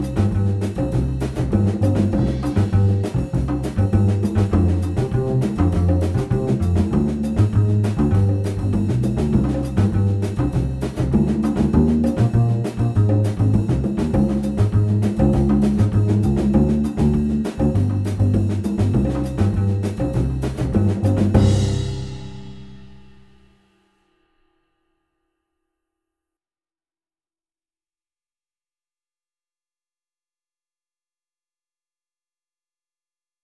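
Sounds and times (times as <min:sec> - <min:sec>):
jazz samba piano play-along: 0:00.0 - 0:23.4.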